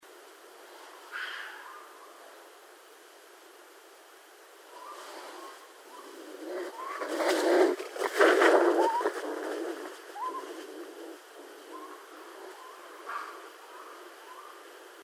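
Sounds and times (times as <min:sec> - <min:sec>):
raccoon: 0:01.0 - 0:02.3, 0:04.7 - 0:14.7.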